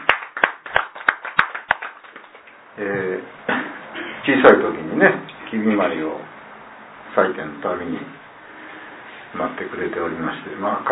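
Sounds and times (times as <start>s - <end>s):
group clapping in celebration: 0.0s - 2.7s
speech: 2.8s - 6.3s, 7.2s - 8.2s, 9.3s - 10.9s.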